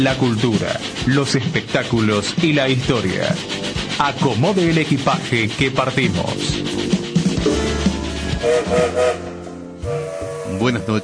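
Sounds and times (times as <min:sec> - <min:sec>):
speech: 0:00.0 - 0:07.6, 0:08.4 - 0:09.2, 0:10.6 - 0:11.0
train whistle as train starts moving: 0:08.3 - 0:11.0.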